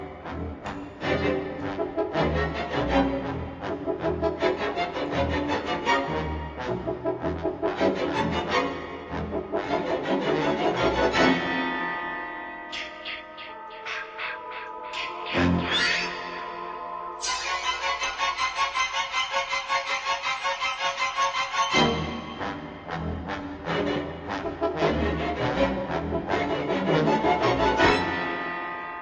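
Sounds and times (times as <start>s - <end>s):
horror movie music: 0.0s - 29.0s.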